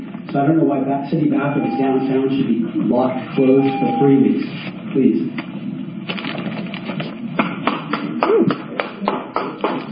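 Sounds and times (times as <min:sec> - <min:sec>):
speech: 0:00.3 - 0:05.5
one person clapping alone: 0:07.4 - 0:09.9.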